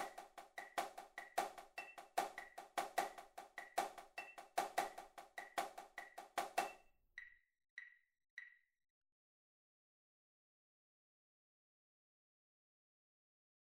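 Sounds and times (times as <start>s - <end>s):
accented tapping: 0.0s - 8.6s.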